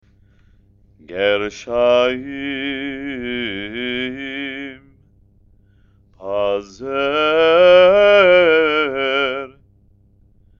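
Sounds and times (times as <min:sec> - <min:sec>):
person chanting haftarah with trope: 0:01.0 - 0:04.9, 0:06.2 - 0:09.6.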